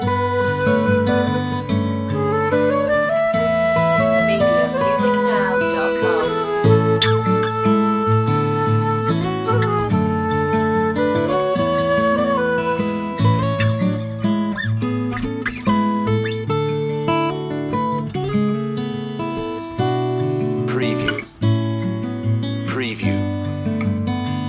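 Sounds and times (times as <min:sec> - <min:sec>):
flute: 0:00.0 - 0:18.1
guitar: 0:00.0 - 0:24.4.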